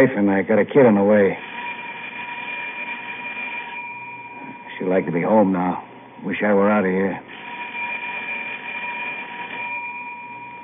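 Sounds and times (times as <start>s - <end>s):
speech: 0.0s - 1.5s, 4.8s - 7.3s
elevator emergency bell ringing: 1.3s - 5.9s, 7.3s - 10.6s.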